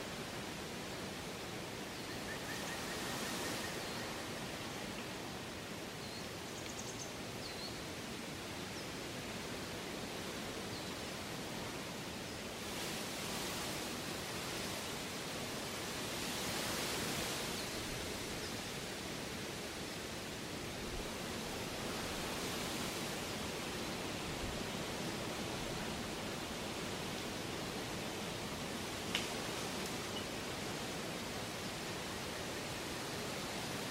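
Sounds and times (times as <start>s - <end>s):
autumn wind through rustling leaves: 0.0s - 33.8s
small tick: 29.1s - 29.3s.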